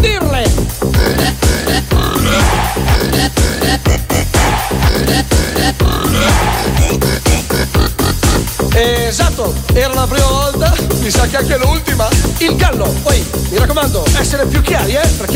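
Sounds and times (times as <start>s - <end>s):
loud music with a strong regular beat: 0.0s - 15.3s
person imitating a pig, grunting and snorting: 0.9s - 8.5s
speech: 9.4s - 15.3s.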